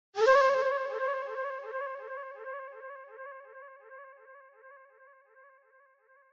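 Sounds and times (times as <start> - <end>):
flute: 0.2 - 4.8.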